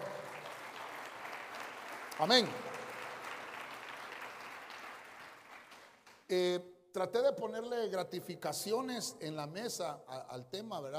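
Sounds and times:
church audience clapping loudly: 0:00.0 - 0:06.3
speech: 0:02.2 - 0:02.7, 0:06.3 - 0:10.9.

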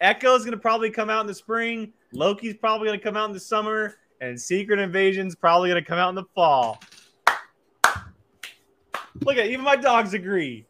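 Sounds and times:
speech: 0:00.0 - 0:07.0, 0:09.2 - 0:10.6
hand clapping: 0:07.2 - 0:09.3.

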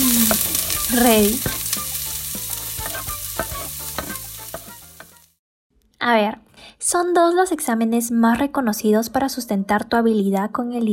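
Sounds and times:
stew sizzling in a pan as wine is added: 0:00.0 - 0:05.4
speech: 0:00.9 - 0:01.5, 0:06.0 - 0:10.9.

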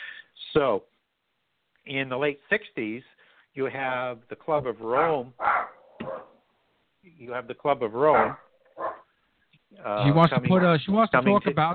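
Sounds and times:
speech: 0:00.5 - 0:00.9, 0:01.8 - 0:05.7, 0:07.0 - 0:08.4, 0:09.7 - 0:11.7
dog barking: 0:04.9 - 0:06.4, 0:08.1 - 0:09.1.

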